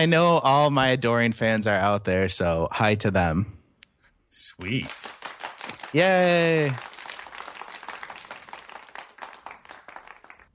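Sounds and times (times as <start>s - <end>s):
speech: 0.0s - 3.6s, 4.3s - 5.2s, 5.9s - 6.9s
golf clap: 4.6s - 10.5s.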